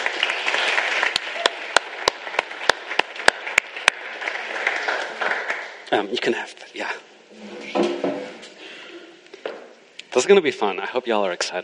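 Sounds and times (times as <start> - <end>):
audience clapping: 0.0 - 6.4
low hissy crowd background: 0.0 - 11.6
speech: 5.9 - 7.8, 10.2 - 11.6.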